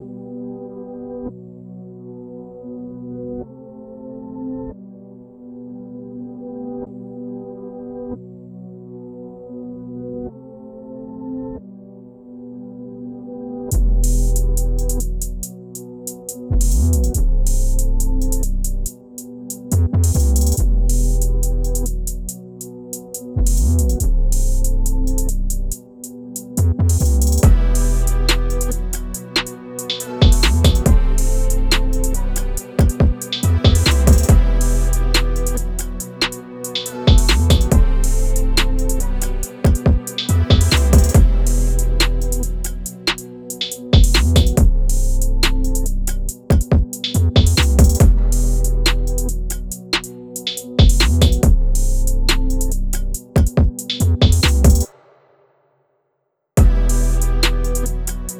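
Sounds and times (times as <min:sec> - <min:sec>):
music beat: 0:13.7 - 0:54.9, 0:56.6 - 0:58.3.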